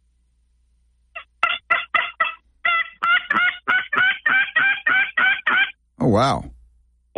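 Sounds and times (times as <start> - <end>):
turkey tube call imitating a hen: 1.2 - 5.8
speech: 6.0 - 6.5.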